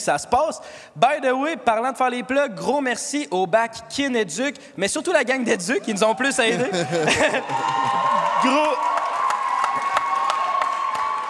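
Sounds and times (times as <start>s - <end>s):
speech: 0.0s - 8.9s
laughter: 5.6s - 8.7s
audience applauding and cheering: 6.1s - 11.2s
scattered whoops: 6.6s - 11.2s.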